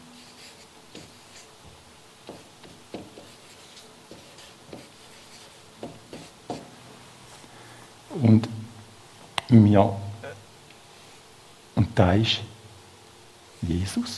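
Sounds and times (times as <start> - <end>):
writing on a board with scratchy strokes and taps: 0.2 - 1.5, 2.2 - 6.7
speech: 8.2 - 8.6, 9.5 - 10.0, 12.0 - 12.5, 13.8 - 14.1.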